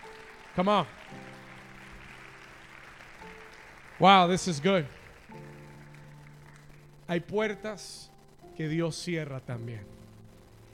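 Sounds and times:
audience applauding: 0.0 - 7.6
speech: 0.6 - 1.2, 4.0 - 5.4, 7.1 - 10.0.

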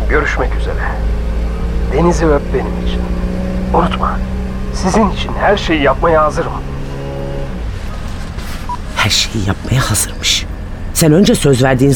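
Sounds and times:
car engine humming while driving: 0.0 - 11.9
road noise rumble: 0.0 - 11.9
speech: 0.1 - 1.2, 1.9 - 6.7, 9.0 - 11.9
faint beep: 8.6 - 8.9.

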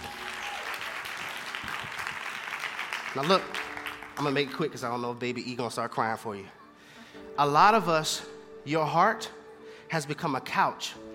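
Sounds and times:
audience applause: 0.0 - 4.7
speech: 3.1 - 6.6, 7.4 - 11.0.

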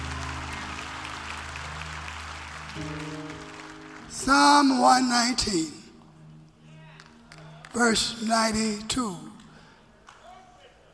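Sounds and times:
audience clapping hands: 0.0 - 4.8
speech: 2.8 - 3.4, 4.1 - 5.8, 7.8 - 9.3.

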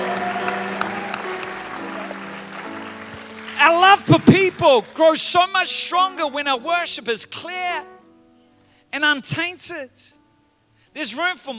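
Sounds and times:
audience clapping: 0.0 - 5.7
speech: 3.7 - 7.9, 9.0 - 10.2, 10.9 - 11.5.

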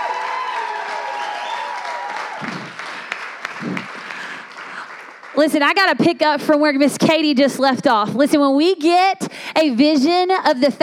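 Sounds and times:
church congregation applauding to welcome a speaker at a Mother's Day service: 0.0 - 6.0
speech: 5.4 - 10.8.

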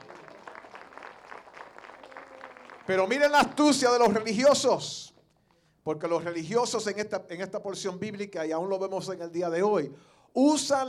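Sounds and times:
audience applause: 0.0 - 4.3
speech: 2.9 - 5.1, 5.8 - 10.8.

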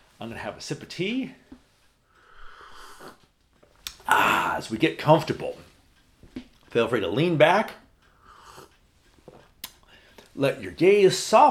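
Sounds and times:
speech: 0.2 - 1.5, 4.1 - 5.7, 6.7 - 7.8, 10.4 - 11.4
deep breath: 2.0 - 3.3, 8.0 - 8.8, 9.8 - 10.3.

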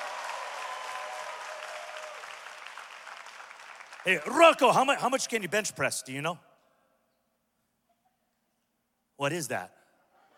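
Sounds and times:
audience clapping: 0.0 - 4.8
speech: 4.0 - 6.5, 9.2 - 9.8.

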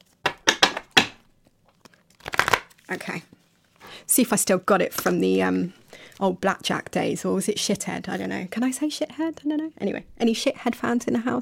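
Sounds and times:
deck of cards being shuffled: 1.7 - 3.2
speech: 2.9 - 3.4, 4.0 - 11.4.

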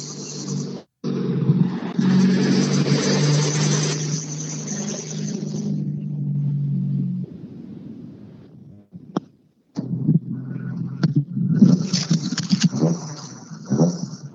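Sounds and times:
rally car driving off from start: 0.0 - 9.2, 9.8 - 14.3.

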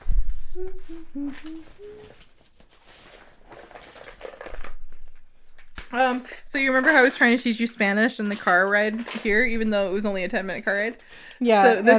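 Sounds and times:
low hooting tones: 0.4 - 2.1
speech: 0.6 - 2.3, 5.9 - 11.9
antacid tablet packaging crinkling and rattling: 0.8 - 5.9.

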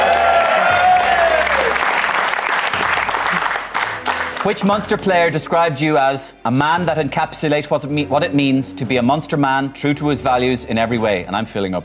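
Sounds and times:
crowd applauding: 0.0 - 4.9
speech: 4.5 - 11.8.

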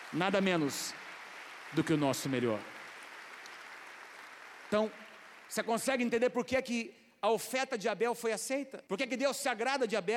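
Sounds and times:
audience applause: 0.0 - 5.7
speech: 0.1 - 1.1, 1.7 - 2.8, 4.7 - 10.1.

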